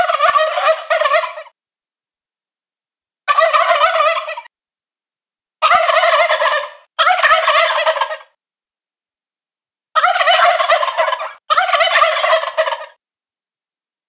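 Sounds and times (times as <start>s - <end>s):
male turkeys gobbling: 0.0s - 1.5s, 3.3s - 4.5s, 5.6s - 8.4s, 10.0s - 13.0s.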